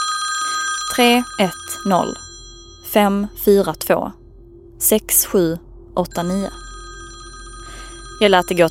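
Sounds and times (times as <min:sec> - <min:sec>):
telephone ringing: 0:00.0 - 0:03.8, 0:06.0 - 0:08.6
faint steady hum: 0:00.0 - 0:08.6
speech: 0:00.9 - 0:02.2, 0:02.9 - 0:04.2, 0:04.8 - 0:06.6, 0:08.2 - 0:08.6.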